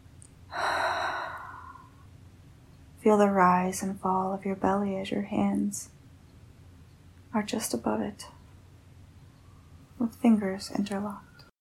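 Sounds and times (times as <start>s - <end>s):
deep breath during a guided breathing exercise: 0.5s - 2.0s
speech: 3.0s - 6.0s, 7.4s - 8.4s, 10.0s - 11.3s.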